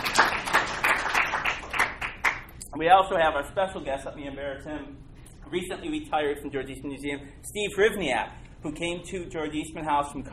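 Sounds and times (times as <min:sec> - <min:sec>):
audience applause: 0:00.0 - 0:02.4
speech: 0:02.8 - 0:10.3.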